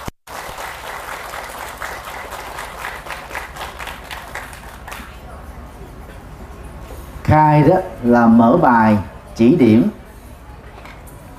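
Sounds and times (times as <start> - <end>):
loud round of applause: 0.0 - 5.2
speech: 7.3 - 10.0.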